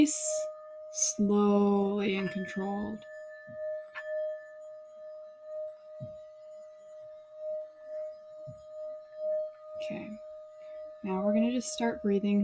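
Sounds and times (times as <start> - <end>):
speech: 0.0 - 0.4, 1.0 - 3.6, 11.0 - 12.4
singing bowls ringing: 0.0 - 12.4
soft low thuds: 1.3 - 4.4, 5.8 - 6.4.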